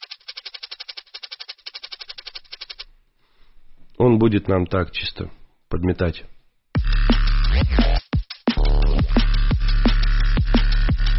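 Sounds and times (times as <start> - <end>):
dense shaker-like ticks in a swung rhythm: 0.0 - 2.9
speech: 4.0 - 6.3, 7.6 - 8.0
synthesized drum loop with swung shaker-like ticks: 6.8 - 11.1.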